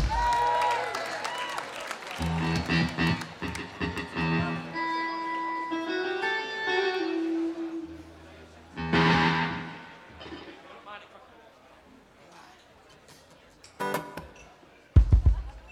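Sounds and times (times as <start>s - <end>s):
drum beat: 0.0s - 0.3s, 15.0s - 15.7s
audience cheering with high whoops: 0.0s - 4.0s
audience applause: 0.0s - 4.8s
sustained instrument tones: 2.2s - 10.4s.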